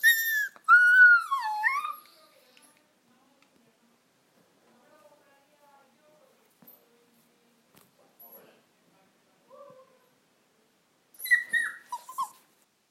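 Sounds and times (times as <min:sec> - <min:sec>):
young puppy crying: 0:00.0 - 0:02.2, 0:11.2 - 0:12.5.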